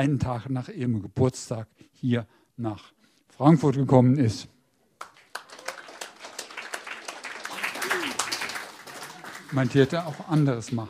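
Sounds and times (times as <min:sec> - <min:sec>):
speech: 0:00.0 - 0:04.6, 0:09.5 - 0:10.8
audience clapping: 0:05.0 - 0:10.8.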